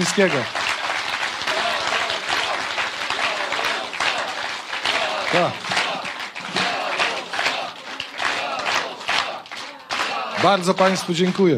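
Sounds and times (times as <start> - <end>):
speech: 0.0 - 0.6, 5.3 - 5.7, 10.4 - 11.5
applause: 0.0 - 11.5.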